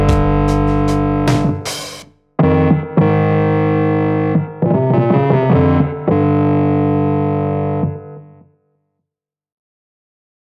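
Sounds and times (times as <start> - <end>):
root bass: 0.0 - 8.3.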